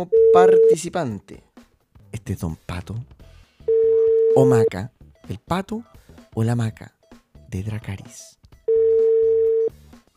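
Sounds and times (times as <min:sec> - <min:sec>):
speech: 0:00.0 - 0:01.5, 0:02.1 - 0:03.2, 0:04.4 - 0:08.4
telephone dial tone: 0:03.7 - 0:04.5, 0:08.7 - 0:09.7.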